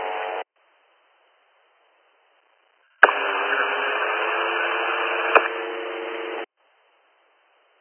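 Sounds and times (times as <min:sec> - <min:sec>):
radio static from an unreadable signal: 0:02.4 - 0:06.5
sharp clicks: 0:03.0 - 0:03.4, 0:05.3 - 0:05.6.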